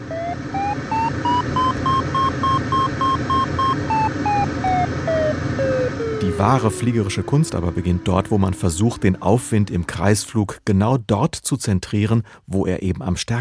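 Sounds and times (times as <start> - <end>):
glider variometer beeping climb and sink tones: 0.0 - 8.5
steady rushing noise: 0.0 - 9.9
speech: 6.4 - 13.3.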